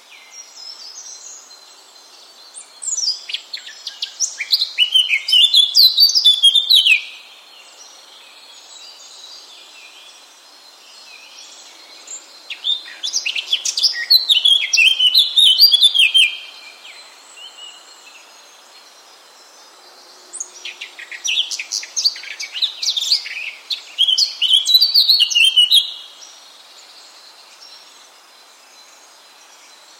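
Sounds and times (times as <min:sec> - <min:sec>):
Eurasian blackcap singing: 0:02.8 - 0:07.1, 0:12.5 - 0:16.6, 0:20.4 - 0:26.0.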